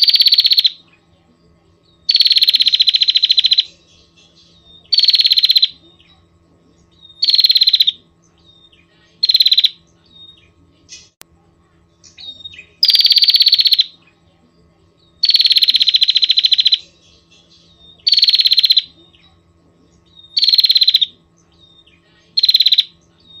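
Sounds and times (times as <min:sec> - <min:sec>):
Prinia rattling trills: 0:00.0 - 0:23.3.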